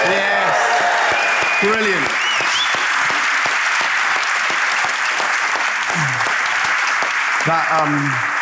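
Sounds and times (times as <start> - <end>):
voices cheering: 0.0 - 2.8
audience applause: 0.0 - 8.4
speech: 1.6 - 2.6, 7.4 - 8.4.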